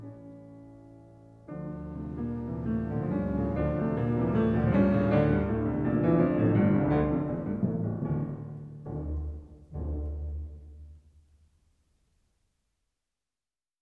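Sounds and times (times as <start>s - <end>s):
piano concerto: 0.0s - 11.0s.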